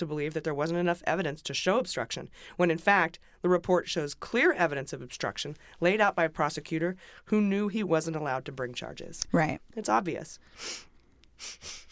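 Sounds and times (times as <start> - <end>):
speech: 0.0 - 11.9
nose sniff: 10.6 - 11.9.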